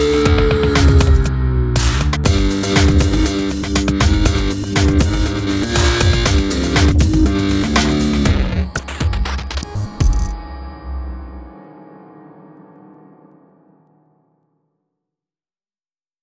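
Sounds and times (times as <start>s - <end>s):
breakbeat: 0.0s - 10.5s.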